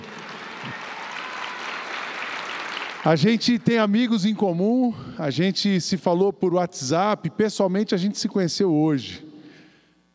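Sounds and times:
audience applause: 0.0 - 3.2
speech: 3.0 - 9.2.

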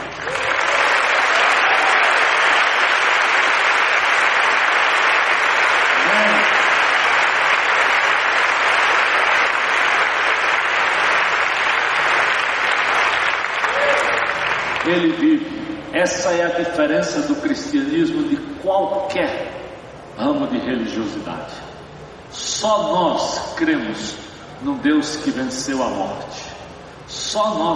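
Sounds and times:
applause: 0.0 - 15.2
speech: 14.9 - 19.6, 20.2 - 21.7, 22.3 - 26.5, 27.3 - 27.7.

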